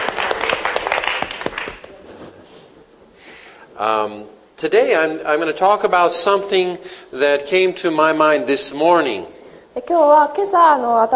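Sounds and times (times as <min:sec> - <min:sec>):
audience applause welcoming guests: 0:00.0 - 0:02.0
speech: 0:03.8 - 0:11.1.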